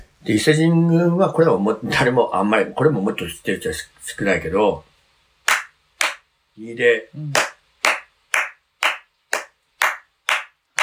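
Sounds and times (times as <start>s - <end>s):
speech: 0.2s - 4.9s, 6.6s - 7.5s
ceremonial hand claps: 5.5s - 6.3s, 7.3s - 10.8s.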